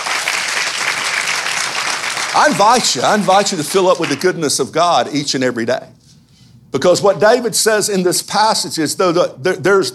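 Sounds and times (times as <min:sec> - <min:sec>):
church congregation clapping during a sermon: 0:00.0 - 0:04.3
speech: 0:02.3 - 0:06.0, 0:06.7 - 0:09.9.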